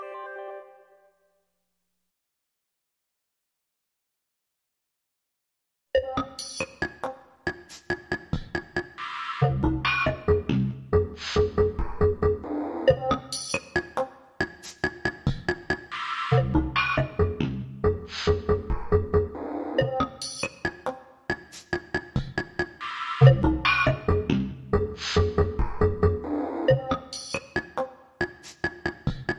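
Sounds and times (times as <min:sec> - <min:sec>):
rhythm: 0:06.0 - 0:29.3.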